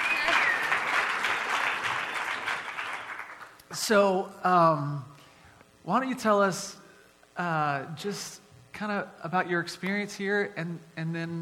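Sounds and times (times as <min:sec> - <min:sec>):
round of applause: 0:00.0 - 0:03.6
speech: 0:03.7 - 0:05.1, 0:05.8 - 0:06.8, 0:07.4 - 0:11.3.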